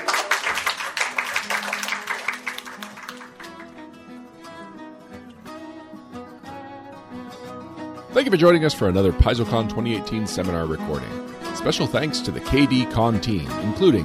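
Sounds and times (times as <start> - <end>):
audience applause: 0.0 - 3.7
speech: 8.2 - 14.0.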